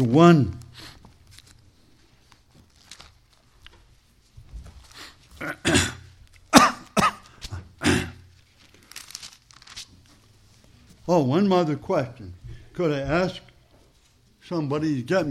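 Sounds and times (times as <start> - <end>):
speech: 0.0 - 0.9, 11.1 - 13.5, 14.5 - 15.2
person coughing: 5.4 - 8.3
throat clearing: 5.4 - 8.3.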